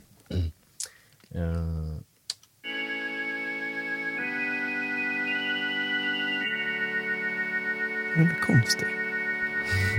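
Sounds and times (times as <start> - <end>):
speech: 1.4 - 1.8, 8.2 - 9.0
Hammond organ: 2.6 - 9.9.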